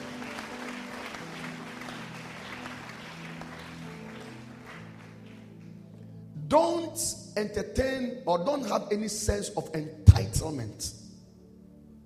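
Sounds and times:
audience clapping hands: 0:00.0 - 0:05.8
speech: 0:06.5 - 0:11.0.

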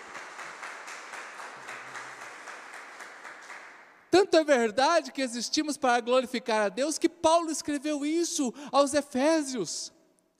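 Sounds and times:
audience applauding: 0:00.0 - 0:04.0
speech: 0:04.2 - 0:10.3.

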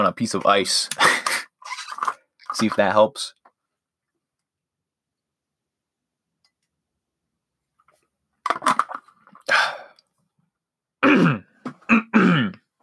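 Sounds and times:
speech: 0:00.0 - 0:01.4, 0:02.0 - 0:03.4
throat clearing: 0:11.0 - 0:12.6.

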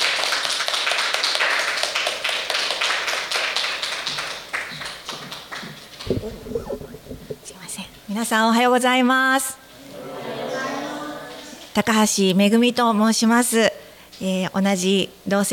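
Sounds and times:
audience clapping: 0:00.0 - 0:07.3
speech: 0:08.2 - 0:09.6, 0:11.8 - 0:15.5.

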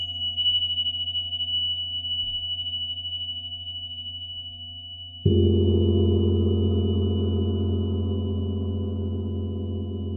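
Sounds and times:
Tibetan singing bowls ringing: 0:00.0 - 0:10.1
Tibetan singing bowl struck: 0:05.3 - 0:10.1.

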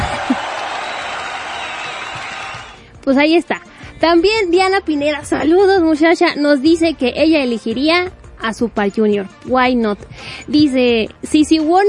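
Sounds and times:
laughter: 0:00.0 - 0:01.3
audience applause: 0:00.0 - 0:02.8
speech: 0:03.1 - 0:11.8.

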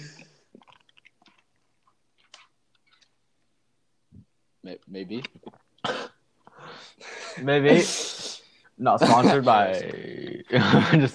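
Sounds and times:
person chewing crunchy food: 0:00.5 - 0:03.2
speech: 0:04.6 - 0:06.0, 0:07.4 - 0:11.1.

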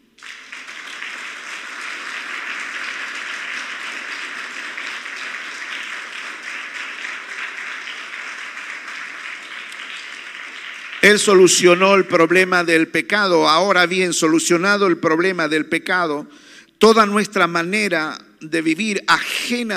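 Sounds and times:
audience applause: 0:00.0 - 0:11.8
speech: 0:11.1 - 0:19.7.

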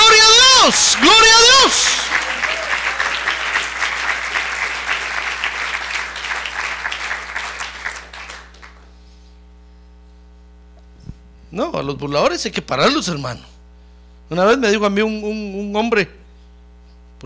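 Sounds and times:
crowd clapping: 0:00.0 - 0:09.0
low electrical hum: 0:00.0 - 0:17.2
speech: 0:00.7 - 0:02.5, 0:11.6 - 0:13.5, 0:14.3 - 0:16.2.

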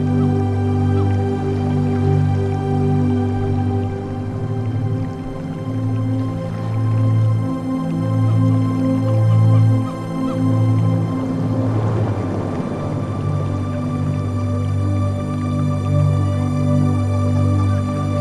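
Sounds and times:
droning music with a strong low hum: 0:00.0 - 0:18.1
rushing swell: 0:10.5 - 0:15.6.

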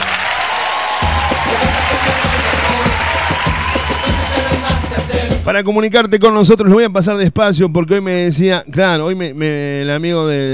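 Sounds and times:
applause: 0:00.0 - 0:05.4
speech: 0:05.5 - 0:10.5.

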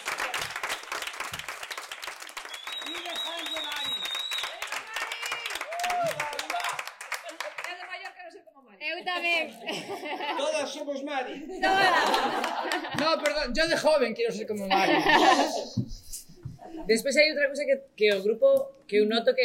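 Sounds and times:
people cheering: 0:00.0 - 0:07.8, 0:11.6 - 0:13.5
crowd applause: 0:00.0 - 0:08.1, 0:11.6 - 0:13.5
people laughing: 0:09.0 - 0:13.3, 0:14.7 - 0:16.9
speech: 0:09.1 - 0:15.8, 0:16.8 - 0:19.4.

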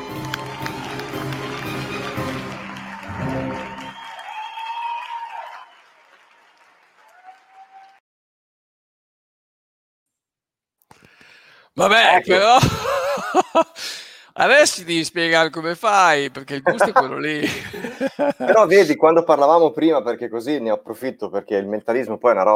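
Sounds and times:
audience applause: 0:00.0 - 0:08.0
speech: 0:11.8 - 0:22.5
laughter: 0:12.3 - 0:13.8, 0:16.2 - 0:18.9.

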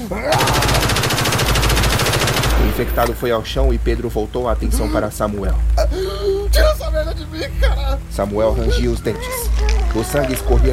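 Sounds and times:
speech: 0:00.1 - 0:00.6, 0:02.8 - 0:10.7
gunshots: 0:00.3 - 0:03.7.

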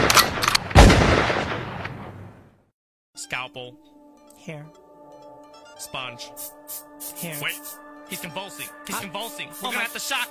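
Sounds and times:
gunshot: 0:00.0 - 0:02.5
speech: 0:03.3 - 0:04.8, 0:05.8 - 0:10.2.

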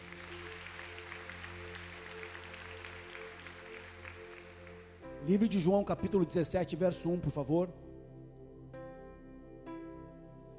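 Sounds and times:
audience applauding: 0:00.0 - 0:05.1
speech: 0:05.2 - 0:07.8.

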